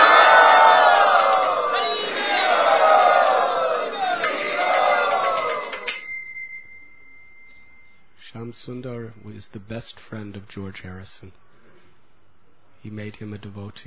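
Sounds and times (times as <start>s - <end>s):
crowd loudly chanting the holy name in welcome: 0.0s - 6.0s
ringing bell-like tones: 0.0s - 9.6s
speech: 8.6s - 11.4s, 12.8s - 13.8s.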